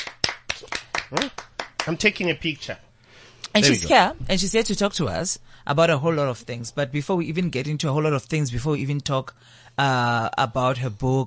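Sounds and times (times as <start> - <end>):
hands clapping: 0.0 - 2.0
speech: 1.1 - 2.8, 3.5 - 11.2.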